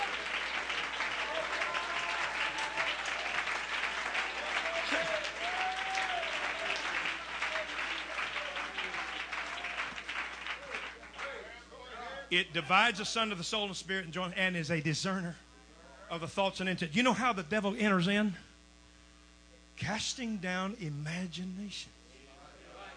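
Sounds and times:
audience clapping: 0:00.0 - 0:11.6
speech: 0:12.3 - 0:15.4, 0:16.1 - 0:18.4, 0:19.8 - 0:22.0.

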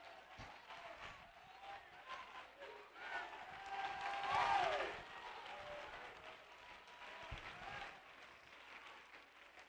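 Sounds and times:
crowd clapping: 0:00.0 - 0:09.6
shouts and whoops: 0:03.0 - 0:06.1.

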